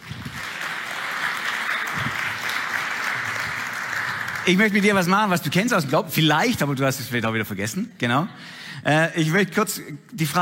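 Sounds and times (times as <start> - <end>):
audience applause: 0.0 - 5.3
speech: 4.5 - 10.3.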